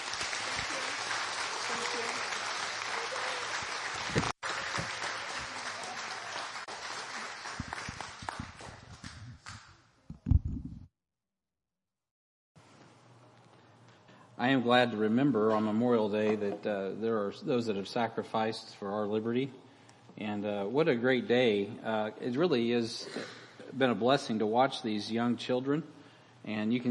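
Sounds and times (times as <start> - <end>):
audience applause: 0.0 - 8.9
speech: 4.1 - 4.3, 14.5 - 19.6, 20.2 - 26.9.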